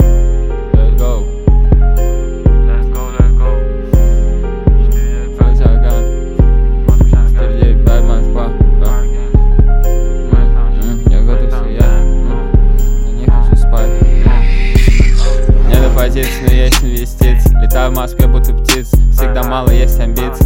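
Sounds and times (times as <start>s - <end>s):
freestyle beat: 0.0s - 20.4s.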